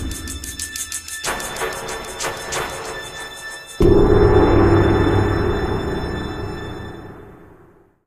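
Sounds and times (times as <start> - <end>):
musical stinger: 3.8 - 7.7.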